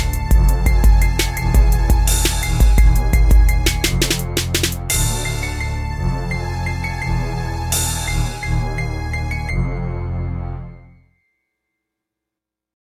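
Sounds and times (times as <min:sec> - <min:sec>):
instrumental rap beat: 0:00.0 - 0:09.6.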